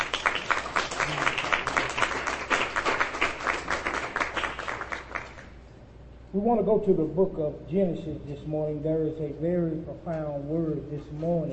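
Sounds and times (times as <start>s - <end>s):
audience applause: 0.0s - 5.4s
speech: 6.4s - 11.5s.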